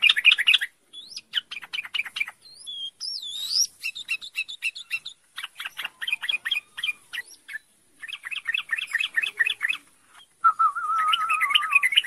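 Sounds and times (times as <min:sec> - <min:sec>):
bird trilling song: 0:00.0 - 0:12.0.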